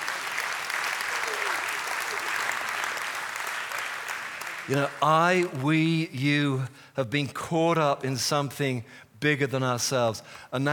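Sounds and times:
audience applause: 0.0 - 5.9
speech: 4.7 - 10.7.

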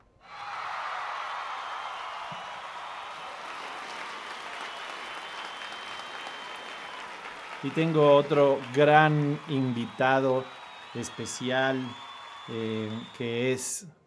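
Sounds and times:
audience applause: 0.2 - 13.7
speech: 7.6 - 14.0.

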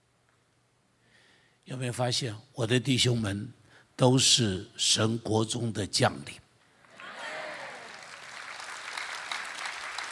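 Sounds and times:
speech: 1.7 - 6.4
audience applause: 6.9 - 10.0.

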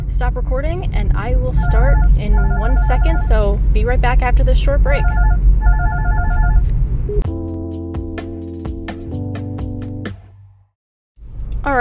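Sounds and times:
speech: 0.1 - 5.5
Bluetooth phone call ringing: 1.5 - 3.5, 4.9 - 6.6.

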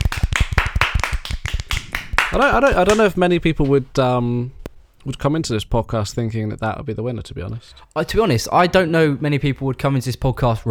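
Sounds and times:
round of applause: 0.0 - 3.2
speech: 2.3 - 10.6.

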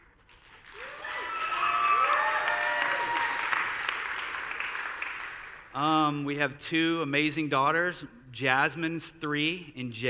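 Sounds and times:
audience clapping: 0.2 - 5.7
speech: 5.8 - 10.0.

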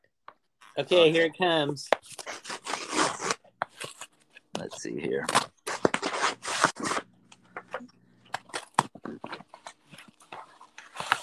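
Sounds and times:
speech: 0.8 - 2.2, 4.6 - 5.5
mailed package being opened, tearing and rustling: 2.0 - 7.1, 8.3 - 11.2.

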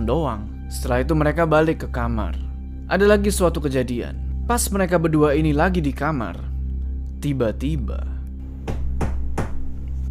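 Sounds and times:
speech: 0.0 - 6.5, 7.2 - 8.2
knocking on a bedroom door: 8.6 - 9.8.

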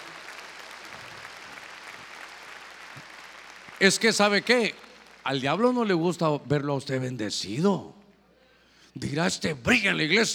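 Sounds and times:
church audience clapping: 0.0 - 5.4
speech: 3.8 - 8.0, 9.0 - 10.3.

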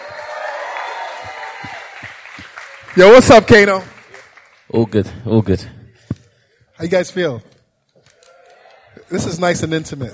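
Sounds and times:
audience round of applause: 0.0 - 5.0
crowd cheering: 0.0 - 5.0, 8.0 - 10.1
speech: 3.0 - 3.9, 4.7 - 5.8, 6.8 - 7.5, 9.1 - 10.1.

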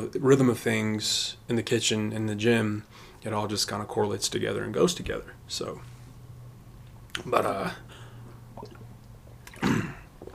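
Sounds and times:
speech: 0.0 - 5.9, 7.2 - 8.0
faint low hum: 0.0 - 10.3
person taking a swig of water: 8.2 - 10.3.

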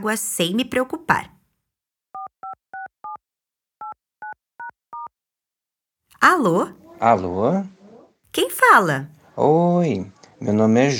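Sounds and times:
speech: 0.0 - 1.4, 6.2 - 7.8, 8.4 - 10.9
touch-tone beeps of a phone number being keyed in: 2.2 - 3.2, 3.8 - 5.1.

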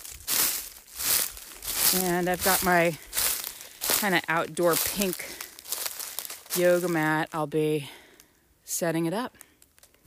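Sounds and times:
footsteps crunching on dry oak leaves: 0.0 - 7.4
speech: 1.9 - 3.1, 4.0 - 5.4, 6.6 - 8.0, 8.7 - 9.4.

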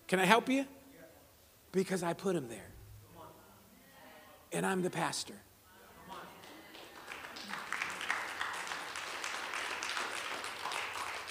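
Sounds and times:
speech: 0.1 - 0.8, 1.7 - 2.8, 4.5 - 5.5
half-hearted clapping: 6.1 - 11.3.

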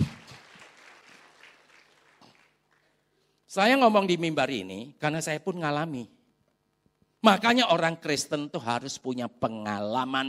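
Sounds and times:
audience applause: 0.0 - 2.9
speech: 3.5 - 6.2, 7.2 - 10.2.

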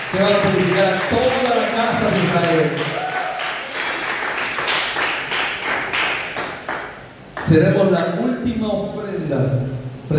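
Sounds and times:
crowd applauding: 0.0 - 7.5
speech: 0.1 - 1.4, 7.5 - 10.1.

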